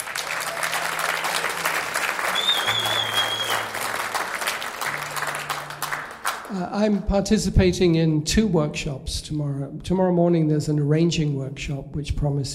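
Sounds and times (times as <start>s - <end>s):
audience clapping: 0.0s - 7.0s
speech: 6.5s - 12.5s.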